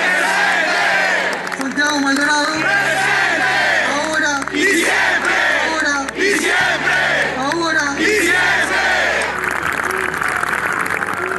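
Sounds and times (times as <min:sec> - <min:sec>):
crowd clapping at a rally for Santiago Maldonado: 0:00.0 - 0:11.3.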